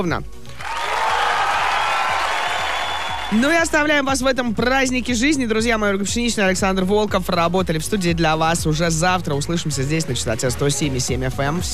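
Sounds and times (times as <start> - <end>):
speech: 0.0 - 0.4, 3.3 - 11.7
applause: 0.5 - 4.0.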